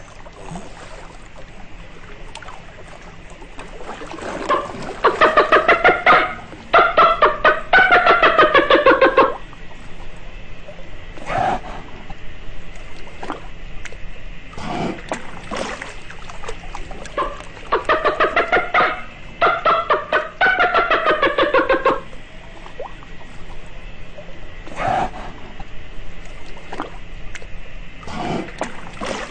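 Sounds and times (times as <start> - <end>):
dolphin calls and squeaks: 4.4 - 9.4, 17.1 - 22.1.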